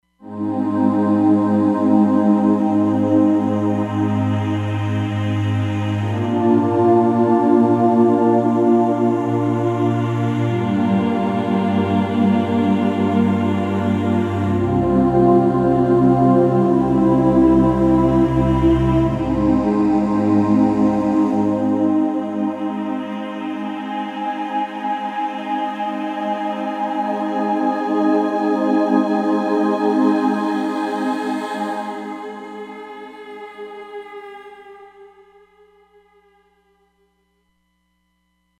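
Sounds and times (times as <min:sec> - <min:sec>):
Roland Fantom XR synthesizer: 0:00.2 - 0:36.1.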